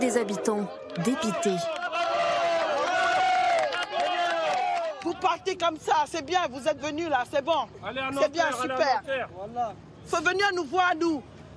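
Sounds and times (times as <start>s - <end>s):
speech: 0.0s - 2.0s, 5.0s - 11.3s
crowd booing and jeering: 0.0s - 5.2s.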